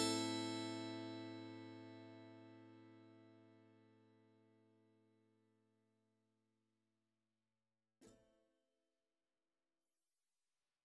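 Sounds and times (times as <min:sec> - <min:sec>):
improvised music in six-eight time: 0:00.0 - 0:02.5.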